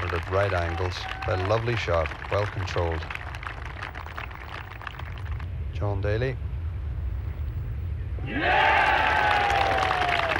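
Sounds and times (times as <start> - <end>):
golf crowd cheering: 0.0 - 5.3, 8.2 - 10.3
low rumble: 0.0 - 10.3
speech: 0.2 - 3.2, 5.8 - 6.4, 8.3 - 8.8.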